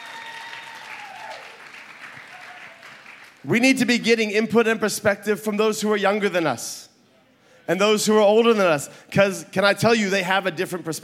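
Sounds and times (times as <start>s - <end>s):
audience applause: 0.0s - 3.8s
speech: 3.4s - 6.9s, 7.7s - 11.0s.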